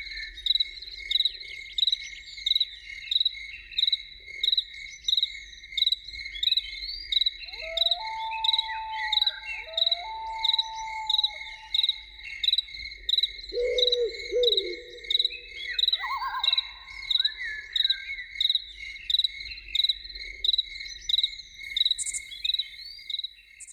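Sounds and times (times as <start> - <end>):
cricket chorus: 0.0 - 23.7
loon wailing: 7.5 - 12.0.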